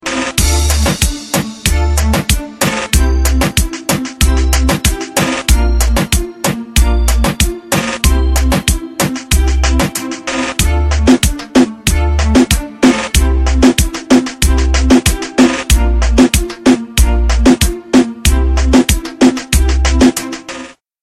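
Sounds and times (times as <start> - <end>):
reggaeton beat: 0.0 - 20.8.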